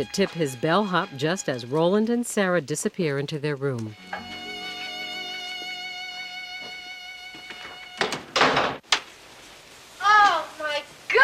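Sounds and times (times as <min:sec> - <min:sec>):
speech: 0:00.0 - 0:04.4
bright tonal drone: 0:03.9 - 0:08.1
hotel room door rattling and slamming shut: 0:08.0 - 0:08.8.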